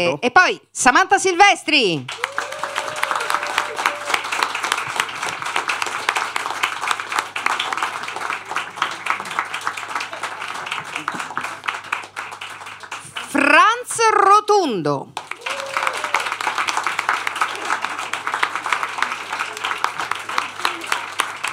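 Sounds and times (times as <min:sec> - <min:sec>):
speech: 0:00.0 - 0:02.4, 0:14.7 - 0:15.2
crowd applauding: 0:02.0 - 0:14.3, 0:15.1 - 0:21.5.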